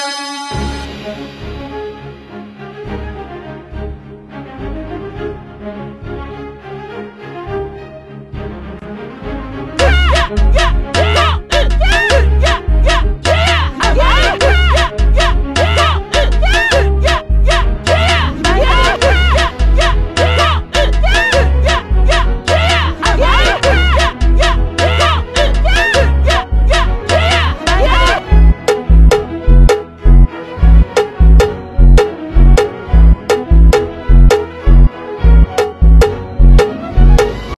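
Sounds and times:
slowed funk music: 0:09.8 - 0:37.5.

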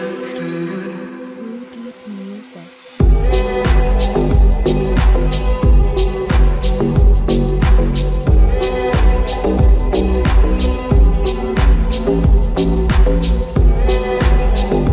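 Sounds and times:
slowed reverb bass: 0:03.0 - 0:14.9.

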